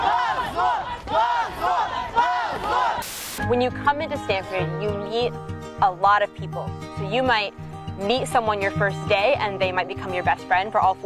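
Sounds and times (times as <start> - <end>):
protest crowd chanting slogans: 0.0 - 3.4
speech: 3.5 - 11.0.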